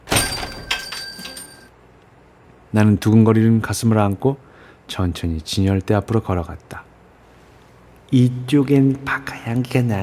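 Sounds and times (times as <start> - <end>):
bell ringing as large shop door opens: 0.0 - 1.7
speech: 2.7 - 6.9, 8.1 - 10.0.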